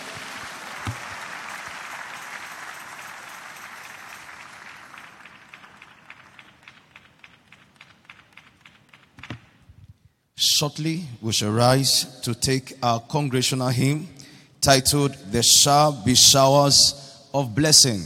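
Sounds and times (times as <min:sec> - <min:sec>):
audience clapping: 0:00.0 - 0:09.6
speech: 0:10.6 - 0:18.0.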